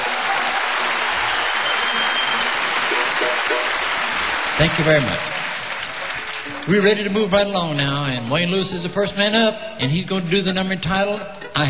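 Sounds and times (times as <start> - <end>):
bluegrass music audience applause welcoming a Kentucky fiddler: 0.0 - 7.2
speech: 4.6 - 5.4, 6.6 - 11.6.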